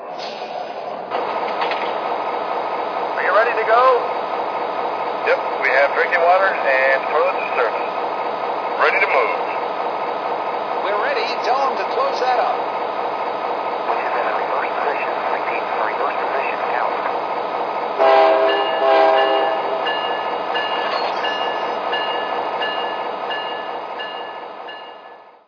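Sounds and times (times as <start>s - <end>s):
SD45 locomotive trains: 0.0s - 25.4s.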